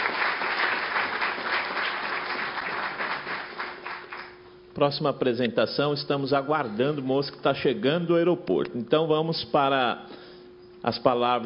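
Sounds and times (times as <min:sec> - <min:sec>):
audience applause: 0:00.0 - 0:04.4
speech: 0:04.8 - 0:10.2, 0:10.8 - 0:11.4.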